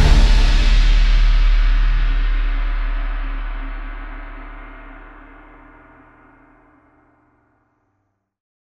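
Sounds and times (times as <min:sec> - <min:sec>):
cinematic trailer music: 0:00.0 - 0:05.7.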